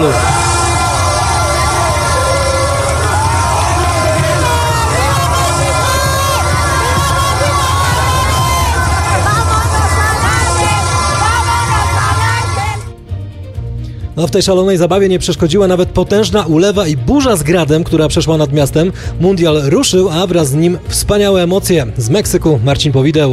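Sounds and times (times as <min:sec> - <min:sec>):
football fans celebrating in the streets, yelling and cheering: 0:00.0 - 0:12.9
horns or sirens wailing: 0:00.0 - 0:12.9
speech: 0:14.2 - 0:23.3.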